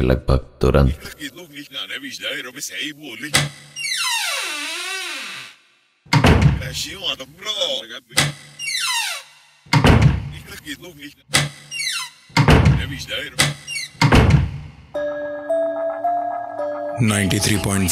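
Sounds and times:
speech: 0:00.0 - 0:04.0, 0:06.6 - 0:08.4, 0:10.6 - 0:11.5, 0:12.8 - 0:13.6, 0:14.9 - 0:17.9
room door shut with heavy thuds: 0:06.1 - 0:06.8, 0:09.7 - 0:10.4, 0:12.4 - 0:14.7.

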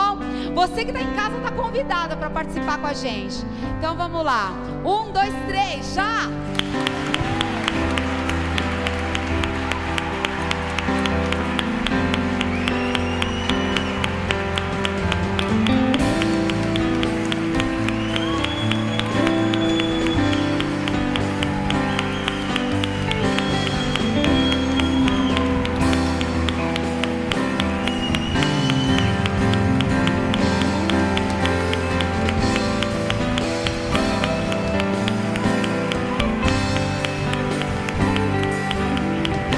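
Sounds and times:
speech: 0:00.6 - 0:07.1
audience clapping hands: 0:06.4 - 0:39.5.

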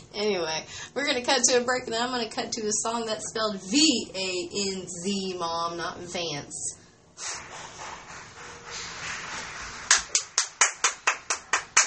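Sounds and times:
speech: 0:00.2 - 0:07.7
clapping: 0:07.3 - 0:11.8.

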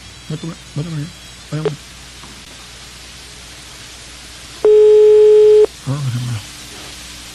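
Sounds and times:
faint telephone line hiss: 0:00.0 - 0:07.3
speech: 0:00.3 - 0:01.9, 0:05.9 - 0:06.6
telephone ringing tone of an outgoing prank call: 0:04.6 - 0:05.7.

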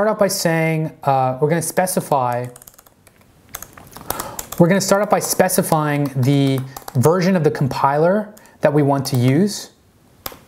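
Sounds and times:
speech: 0:00.0 - 0:02.7, 0:04.6 - 0:09.7
typing Solidity code on a computer keyboard: 0:02.3 - 0:07.3, 0:08.3 - 0:09.4.

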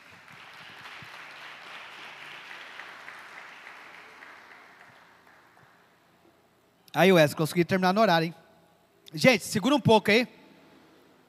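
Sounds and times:
audience applause: 0:00.0 - 0:05.9
speech: 0:07.0 - 0:08.4, 0:09.1 - 0:10.4.

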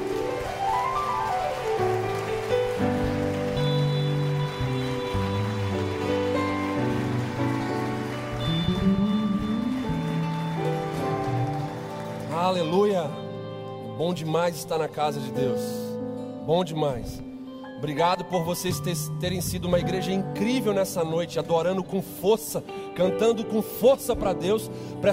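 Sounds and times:
audience applauding loudly: 0:00.0 - 0:13.6
speech: 0:12.5 - 0:13.2, 0:14.0 - 0:15.8, 0:16.5 - 0:25.1.

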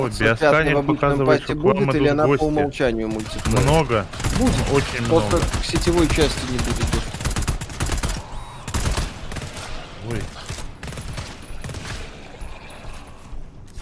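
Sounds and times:
speech: 0:00.0 - 0:07.0
video game gunfire: 0:03.1 - 0:12.4.

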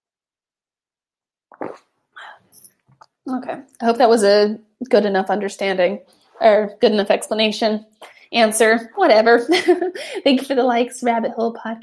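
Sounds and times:
person sipping tea: 0:01.5 - 0:03.2
speech: 0:03.2 - 0:11.8.

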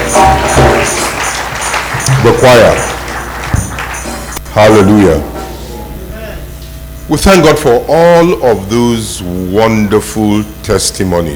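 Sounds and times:
audience clapping: 0:00.0 - 0:05.2
speech: 0:02.2 - 0:02.9, 0:04.6 - 0:05.3, 0:07.1 - 0:11.3.

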